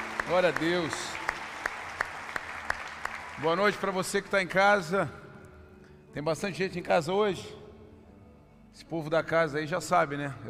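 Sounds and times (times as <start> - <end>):
audience applause: 0.0 - 4.3
sharp rhythmic claps: 0.0 - 4.6
speech: 0.3 - 1.2, 3.4 - 5.2, 6.1 - 7.6, 8.8 - 10.4.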